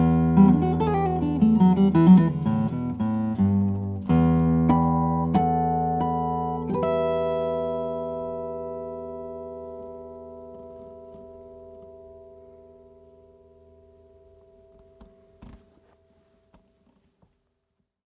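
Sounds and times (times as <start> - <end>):
carbon fiber steel string flattop guitars: 0.0 - 13.8.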